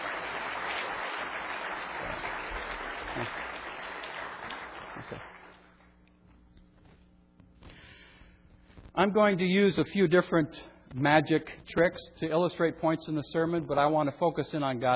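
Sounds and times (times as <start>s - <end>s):
audience applause: 0.0s - 5.8s
speech: 5.1s - 5.3s, 9.0s - 14.9s.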